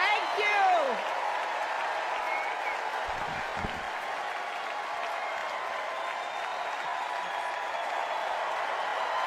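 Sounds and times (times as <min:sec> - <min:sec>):
convention crowd applauding and cheering: 0:00.0 - 0:09.2
low thumps: 0:03.1 - 0:03.9.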